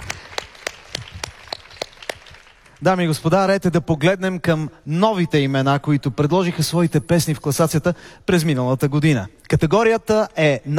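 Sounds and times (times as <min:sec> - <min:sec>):
sparse hand claps at a music awards ceremony: 0:00.0 - 0:02.8
speech: 0:02.8 - 0:10.7.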